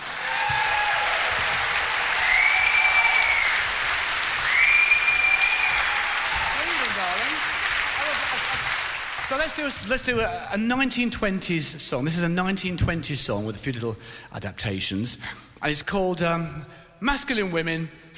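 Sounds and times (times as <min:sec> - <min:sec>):
audience applause at Wilton's Theatre welcoming a music hall singer: 0:00.0 - 0:10.1
audience whistles: 0:02.2 - 0:03.7, 0:04.4 - 0:05.9
speech: 0:09.3 - 0:18.0.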